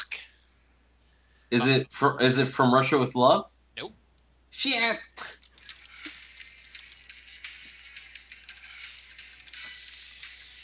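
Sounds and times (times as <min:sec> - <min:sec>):
speech: 0:01.5 - 0:05.4
keyboard typing: 0:05.4 - 0:10.6.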